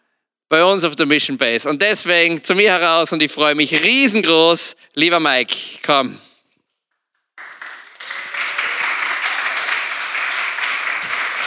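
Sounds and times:
speech: 0:00.5 - 0:06.3
applause: 0:07.4 - 0:11.4.

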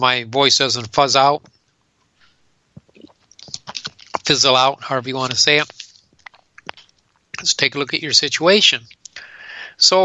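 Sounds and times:
speech: 0:00.0 - 0:01.6, 0:03.7 - 0:05.8, 0:07.4 - 0:09.0, 0:09.8 - 0:10.0
person drinking water: 0:02.8 - 0:04.3, 0:05.7 - 0:07.4.

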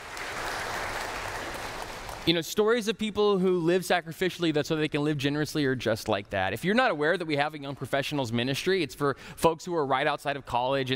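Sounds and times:
room full of people clapping: 0:00.0 - 0:02.3
speech: 0:02.3 - 0:10.9.

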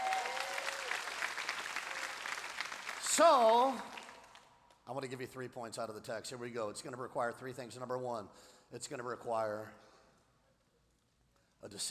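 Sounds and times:
faint congregation applause during a church service: 0:00.0 - 0:04.4
speech: 0:03.2 - 0:03.9, 0:04.9 - 0:09.9, 0:11.6 - 0:11.9.

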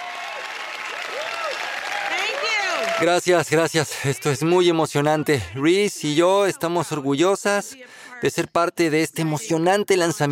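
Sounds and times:
crowd applauding celebrities at a launch event: 0:00.0 - 0:04.4
speech: 0:03.0 - 0:10.3.

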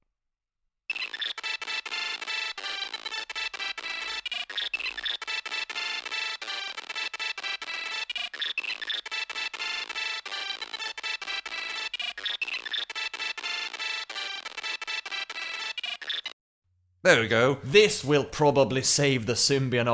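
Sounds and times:
SID-style chiptune music playing from a phone: 0:00.9 - 0:16.4
speech: 0:17.0 - 0:19.9.

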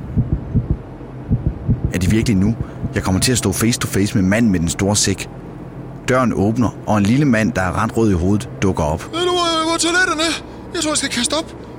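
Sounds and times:
heartbeat sound effect: 0:00.0 - 0:03.3
speech: 0:02.1 - 0:05.5, 0:06.1 - 0:11.6.

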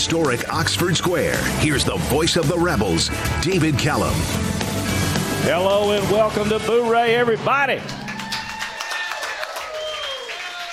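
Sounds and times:
speech: 0:00.1 - 0:08.0
crowd cheering: 0:07.8 - 0:10.7.

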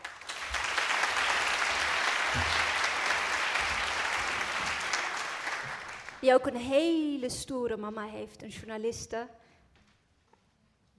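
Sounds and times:
thunderous audience applause: 0:00.0 - 0:06.2
speech: 0:06.2 - 0:09.4.

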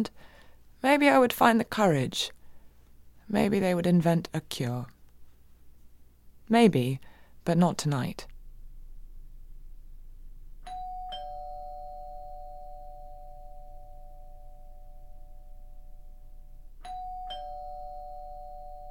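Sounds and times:
speech: 0:00.0 - 0:02.4, 0:03.3 - 0:04.9, 0:06.5 - 0:08.3
doorbell ringing: 0:10.6 - 0:18.8.

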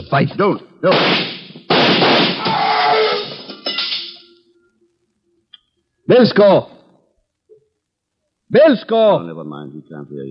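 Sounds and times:
speech: 0:00.0 - 0:01.4, 0:06.1 - 0:06.8, 0:08.5 - 0:10.2
gunshots fired through a door: 0:00.8 - 0:02.6.

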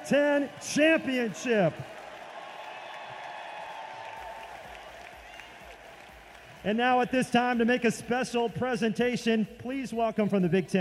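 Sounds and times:
crowd applause for the Badgers team: 0:00.0 - 0:07.2
speech: 0:00.1 - 0:02.0, 0:06.6 - 0:10.7.

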